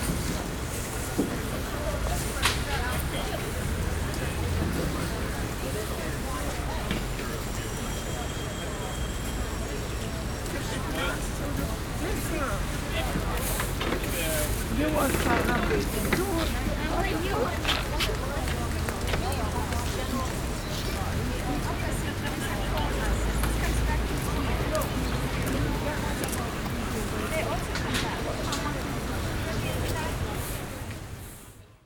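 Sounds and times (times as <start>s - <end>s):
outdoor market ambience: 0.0s - 31.8s.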